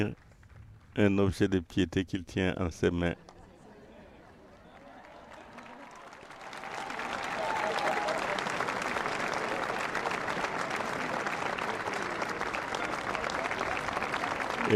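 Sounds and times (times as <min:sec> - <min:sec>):
speech: 0:00.0 - 0:00.2, 0:01.0 - 0:03.2
audience applause: 0:03.4 - 0:14.7.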